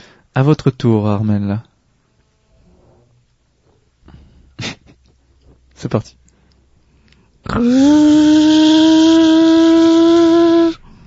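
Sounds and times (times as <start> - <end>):
speech: 0.4 - 1.7, 5.8 - 6.2, 7.4 - 10.8
voice imitating a lawn mower: 7.5 - 10.8.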